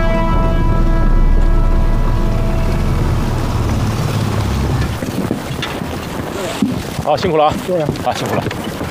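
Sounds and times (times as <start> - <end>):
motorcycle engine running: 0.1 - 6.3
speech: 7.1 - 8.7.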